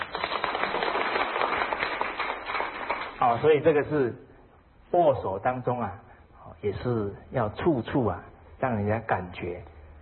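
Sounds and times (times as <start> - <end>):
audience applause: 0.0 - 3.4
speech: 3.2 - 4.3, 4.9 - 9.7.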